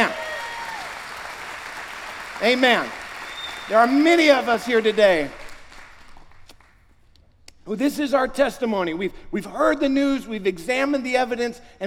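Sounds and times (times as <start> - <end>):
audience applause: 0.0 - 6.7
speech: 2.4 - 3.0, 3.7 - 5.4, 7.7 - 11.8.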